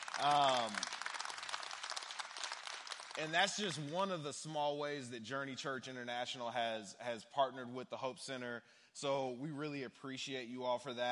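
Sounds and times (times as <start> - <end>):
audience hand clapping: 0.0 - 4.2
speech: 0.2 - 0.9, 3.2 - 11.1.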